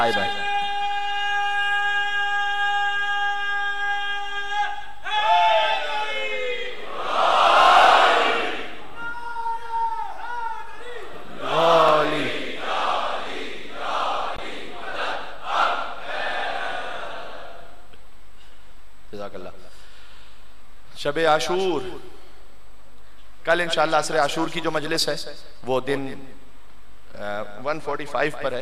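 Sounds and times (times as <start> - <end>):
speech: 0.0 - 0.4, 21.0 - 22.1, 23.5 - 26.4, 27.2 - 28.6
crowd shouting a religious slogan at a Muharram majlis: 0.0 - 17.8
leading call of a religious slogan at a Muharram majlis: 11.4 - 12.3.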